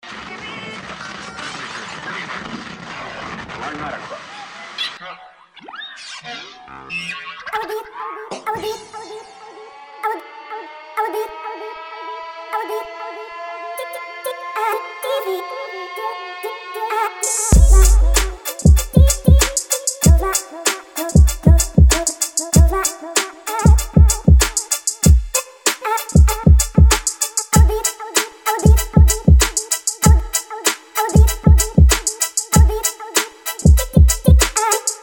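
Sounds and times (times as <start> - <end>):
trap beats: 17.2 - 35.0.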